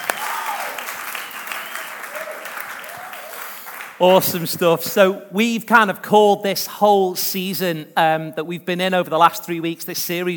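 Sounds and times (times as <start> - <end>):
audience applause: 0.0 - 4.0
speech: 4.0 - 10.3.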